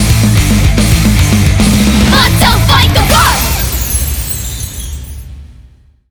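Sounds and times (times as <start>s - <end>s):
background music: 0.0s - 4.2s.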